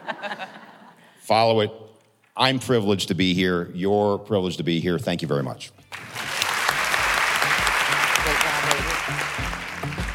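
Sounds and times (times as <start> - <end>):
laughter: 0.0 - 1.0
speech: 1.3 - 1.8, 2.4 - 5.8
crowd clapping steadily: 5.9 - 10.1.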